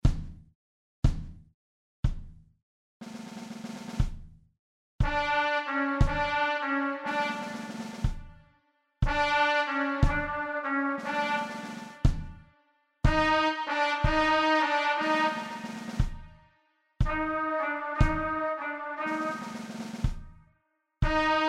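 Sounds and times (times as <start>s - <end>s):
trumpet: 5.0s - 16.4s, 17.0s - 20.2s, 21.0s - 21.4s.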